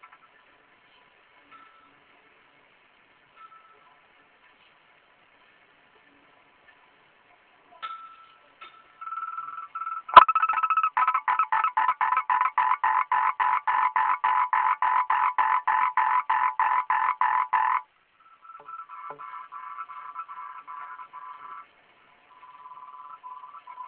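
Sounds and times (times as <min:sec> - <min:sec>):
frog croaking: 0:09.1 - 0:21.7.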